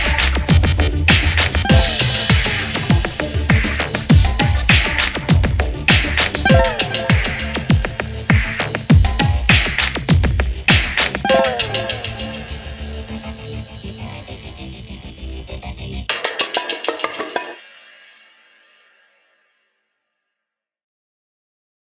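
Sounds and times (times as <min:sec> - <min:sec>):
ambient ukulele noise: 0:00.0 - 0:13.7.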